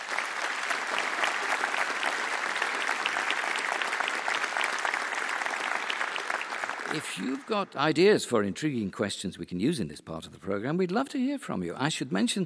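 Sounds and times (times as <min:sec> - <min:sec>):
round of applause: 0:00.0 - 0:08.0
speech: 0:06.9 - 0:12.4.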